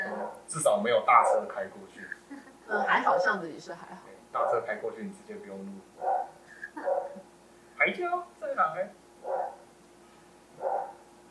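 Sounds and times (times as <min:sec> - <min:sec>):
neighbor's dog barking: 0:00.0 - 0:00.4, 0:01.2 - 0:01.6, 0:06.0 - 0:07.2, 0:09.2 - 0:09.6, 0:10.6 - 0:11.2
speech: 0:00.5 - 0:07.0, 0:07.8 - 0:09.5.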